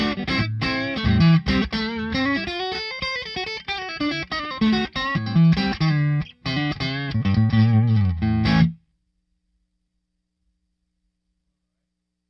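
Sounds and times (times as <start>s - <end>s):
electric guitar through neck pickup: 0.0s - 8.8s.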